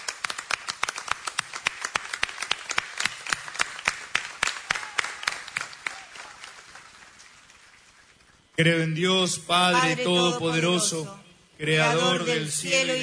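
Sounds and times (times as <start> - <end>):
audience applause: 0.0 - 7.9
speech: 8.6 - 13.0.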